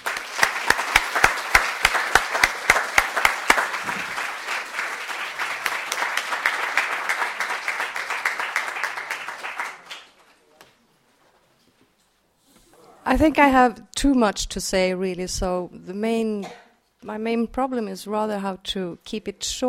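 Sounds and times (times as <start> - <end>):
audience applauding to welcome an author at a Baltimore event: 0.0 - 10.5
speech: 13.1 - 19.6.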